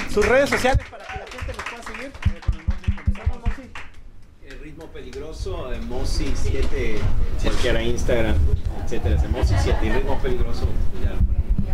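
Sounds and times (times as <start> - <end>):
people clapping: 0.0 - 5.9
speech: 0.2 - 2.4, 4.8 - 11.4.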